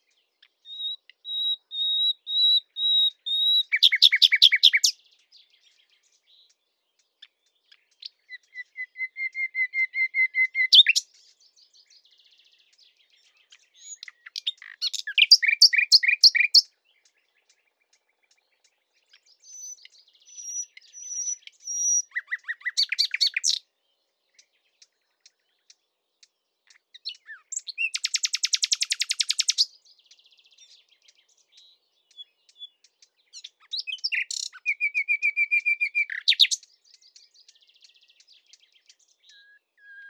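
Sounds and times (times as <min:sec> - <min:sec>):
Common Nightingale Luscinia megarhynchos singing: 0:00.0 - 0:40.0.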